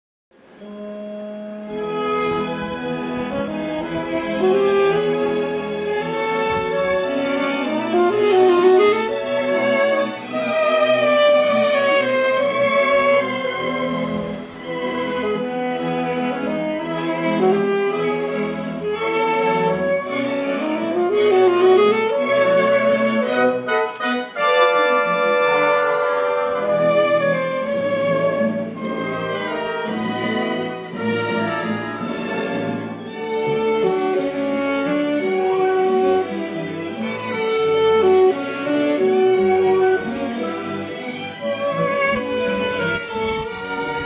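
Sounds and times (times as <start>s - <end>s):
saxophone concerto with orchestra: 0.4s - 44.0s.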